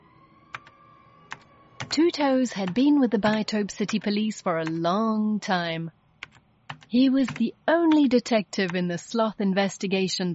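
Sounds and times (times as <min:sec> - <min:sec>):
sloth claws tapping on a computer keyboard: 0:01.3 - 0:02.0, 0:02.6 - 0:04.8, 0:06.2 - 0:08.8
speech: 0:02.0 - 0:06.0, 0:06.9 - 0:10.3.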